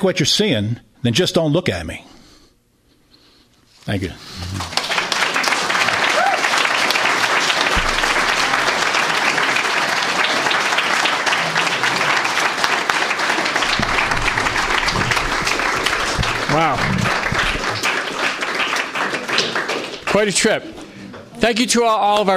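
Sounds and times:
speech: 0.0 - 2.1, 3.9 - 4.8, 16.5 - 17.1, 20.2 - 20.8, 21.4 - 22.3
audience applause: 4.3 - 20.8.

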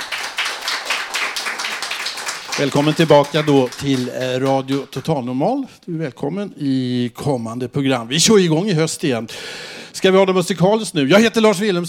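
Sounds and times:
applause: 0.0 - 5.2
speech: 2.6 - 11.8.

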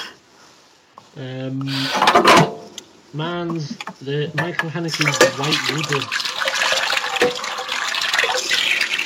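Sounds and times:
speech: 1.2 - 1.9, 3.1 - 6.3
dishes being washed: 4.3 - 9.0.

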